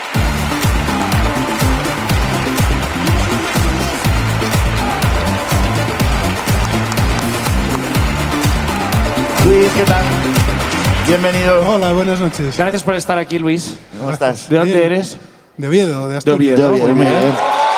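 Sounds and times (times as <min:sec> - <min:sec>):
audience applause: 0:00.0 - 0:13.5, 0:17.1 - 0:17.7
thumping low-pitched rhythmic beat: 0:00.0 - 0:13.9
speech: 0:09.6 - 0:10.4, 0:11.1 - 0:17.5.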